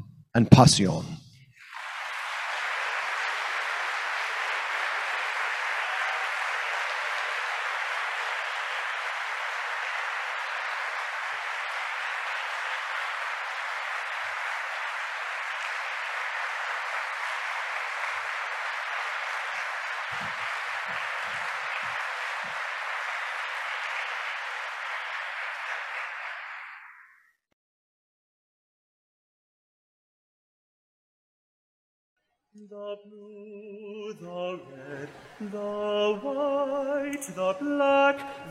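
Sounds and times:
speech: 0.4 - 1.2
concert audience applause welcoming performers onto the stage: 1.6 - 27.2, 34.8 - 38.4.

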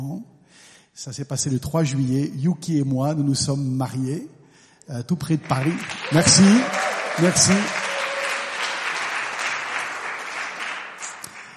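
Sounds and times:
speech: 0.1 - 7.8
audience applause: 5.4 - 11.5.

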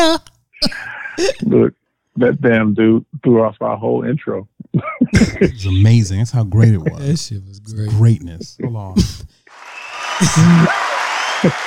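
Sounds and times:
speech: 0.2 - 9.4, 10.2 - 11.6
laughter: 4.8 - 7.3, 10.0 - 11.6
round of applause: 9.5 - 11.6.

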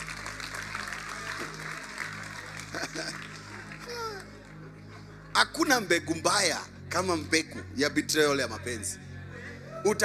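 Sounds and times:
audience clapping: 0.0 - 4.7
laughter: 2.4 - 5.7
speech: 5.4 - 9.1, 9.8 - 10.0.

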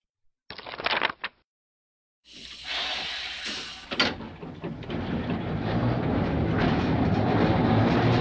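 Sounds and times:
train departing on rails: 2.4 - 8.1
train clunks and clank: 3.9 - 8.1.

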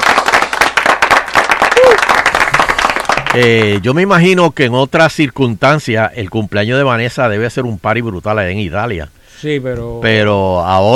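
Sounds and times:
applause: 0.0 - 3.8
speech: 3.4 - 10.9.

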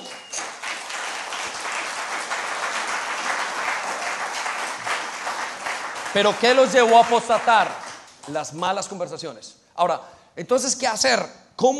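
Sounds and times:
audience applause: 0.0 - 8.4
speech: 6.1 - 11.7.

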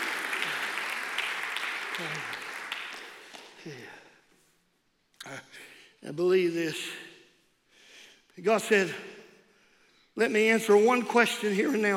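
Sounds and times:
audience clapping in praise: 0.0 - 4.1
speech: 2.0 - 2.4, 3.6 - 4.0, 6.0 - 7.0, 8.4 - 9.1, 10.2 - 11.9.

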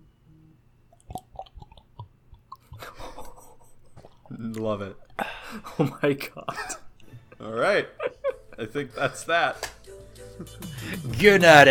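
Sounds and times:
person drinking water ASMR: 0.9 - 5.4
speech: 4.4 - 6.7, 7.4 - 9.7, 10.4 - 11.7.

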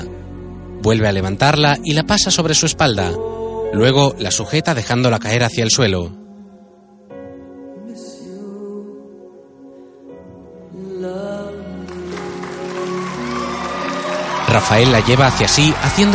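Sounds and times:
music: 0.0 - 16.1
speech: 0.8 - 6.2, 14.5 - 16.1
audience cheering and applauding after a couple's dance in a film: 11.9 - 16.1.

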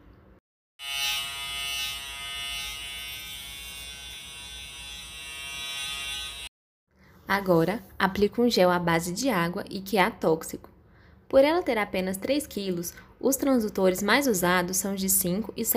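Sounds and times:
electric clipper shaving an animal's abdomen: 0.8 - 6.5
speech: 7.3 - 10.7, 11.3 - 15.7.

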